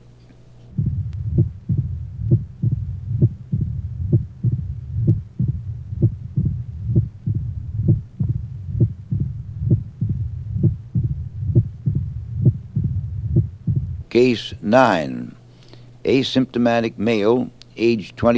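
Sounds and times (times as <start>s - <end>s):
fast heartbeat at the mitral area through a stethoscope: 0.7s - 14.1s
low rumble: 0.7s - 14.2s
speech: 14.2s - 15.4s, 16.0s - 18.3s.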